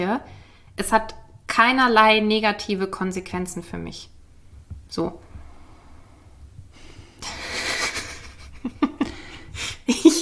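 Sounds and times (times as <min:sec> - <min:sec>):
speech: 0:00.0 - 0:04.1, 0:04.9 - 0:05.2
heavy breathing: 0:05.4 - 0:08.2, 0:09.0 - 0:09.9.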